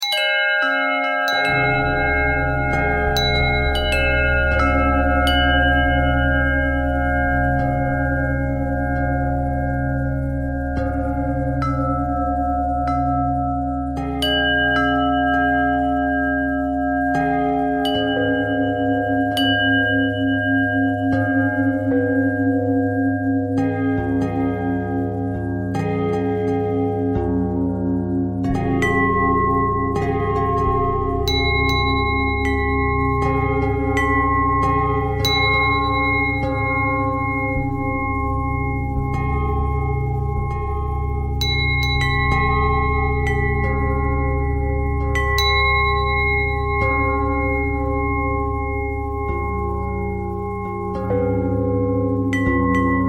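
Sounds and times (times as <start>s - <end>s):
bells ringing: 0.0s - 53.0s.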